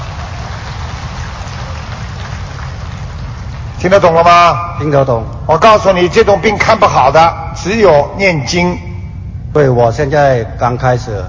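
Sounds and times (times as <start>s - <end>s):
applause: 0.0s - 4.3s
speech: 3.8s - 8.9s, 9.5s - 11.2s.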